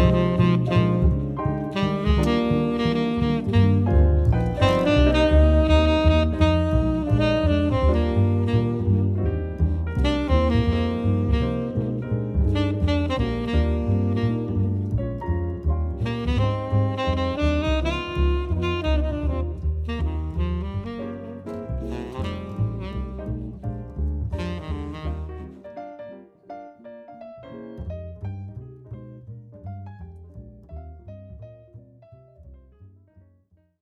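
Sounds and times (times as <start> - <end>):
saxophone in a quartet: 0.0 - 26.1
bass in a quartet: 0.0 - 26.2, 26.9 - 33.8
piano in a quartet: 0.0 - 33.8.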